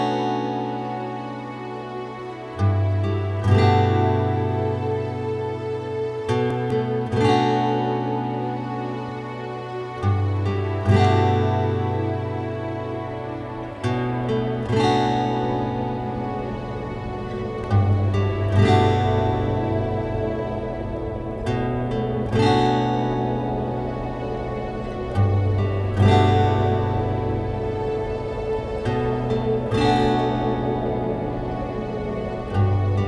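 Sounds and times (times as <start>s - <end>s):
guitar: 0.0s - 33.0s.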